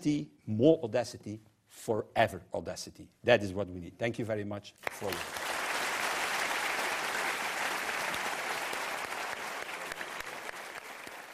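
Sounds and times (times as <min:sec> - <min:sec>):
speech: 0:00.0 - 0:05.5
audience applause: 0:04.8 - 0:11.3.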